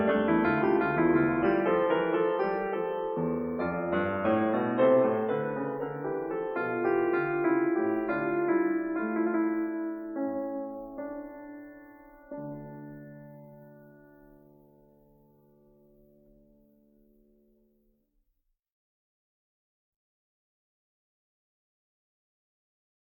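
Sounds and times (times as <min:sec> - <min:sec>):
piano fugue in D minor: 0:00.0 - 0:17.6.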